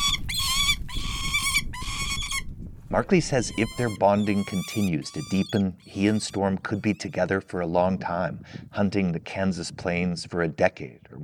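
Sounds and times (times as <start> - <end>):
captive bird's contented calls while eating: 0.0 - 7.5
speech: 2.9 - 11.2.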